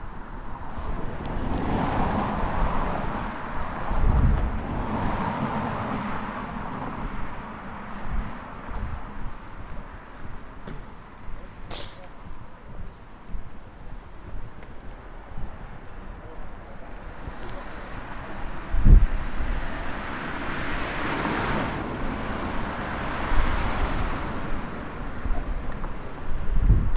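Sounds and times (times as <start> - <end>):
street ambience: 0.0 - 26.9
birds: 6.7 - 26.2.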